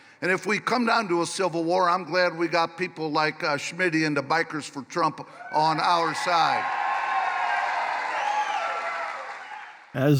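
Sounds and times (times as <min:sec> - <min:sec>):
speech: 0:00.2 - 0:06.8, 0:10.0 - 0:10.1
crowd at a political rally applauding and cheering: 0:06.0 - 0:09.9.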